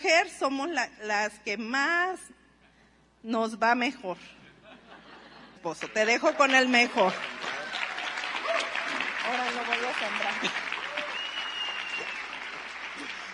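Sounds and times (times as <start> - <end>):
speech: 0.0 - 2.4, 3.2 - 4.4, 5.6 - 7.4, 9.3 - 10.6
audience applause: 6.2 - 13.3.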